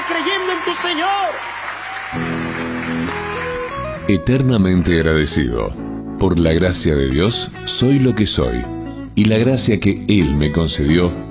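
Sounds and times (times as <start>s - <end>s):
congregation applause at a church service: 0.0s - 4.0s
speech: 0.6s - 2.4s, 4.1s - 11.2s.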